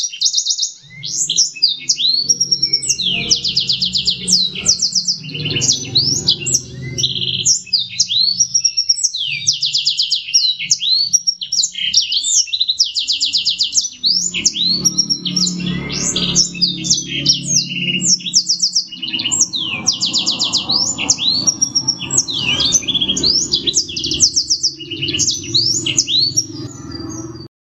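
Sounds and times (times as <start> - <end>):
black-throated canary singing: 0.0 - 27.5.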